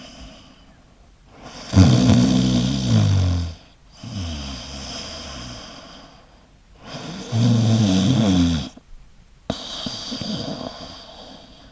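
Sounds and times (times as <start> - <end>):
person snoring: 1.4 - 6.1, 6.8 - 8.8, 9.5 - 11.6.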